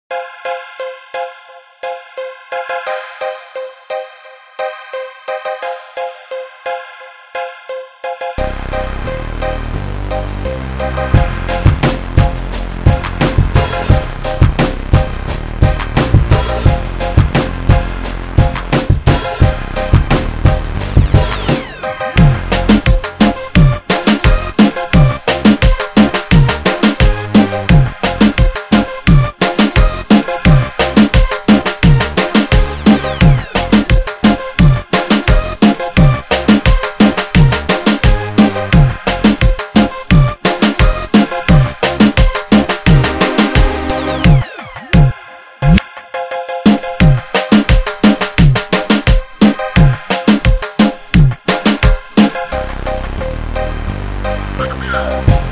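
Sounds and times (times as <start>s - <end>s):
gangsta reggaeton beat: 7.7s - 55.4s.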